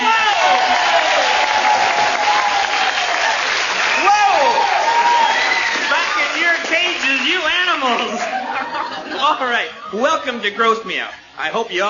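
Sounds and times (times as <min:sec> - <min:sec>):
studio audience applauding a game show host: 0:00.0 - 0:08.9
laughter: 0:07.8 - 0:11.1
speech: 0:09.3 - 0:11.8.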